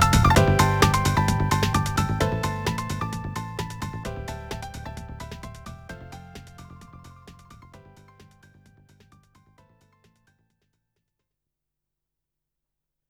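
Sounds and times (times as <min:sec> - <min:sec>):
staff roll credits music: 0:00.0 - 0:08.6.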